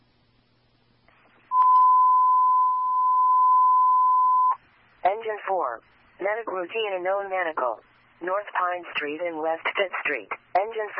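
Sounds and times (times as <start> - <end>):
faint radio hiss: 0.0 - 1.6, 4.5 - 10.9
dispatch alarm tone beep: 1.5 - 4.6
speech: 5.3 - 10.9.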